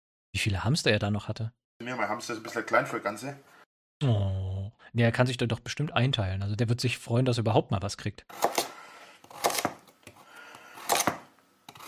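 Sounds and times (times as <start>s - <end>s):
speech: 0.4s - 8.6s
knife cutting carrots: 8.3s - 11.8s.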